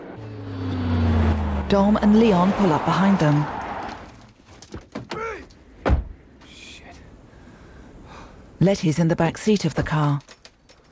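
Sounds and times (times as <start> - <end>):
truck driving down the road after a roadside crash: 0.0 - 4.4
speech: 1.7 - 3.6, 8.6 - 10.3.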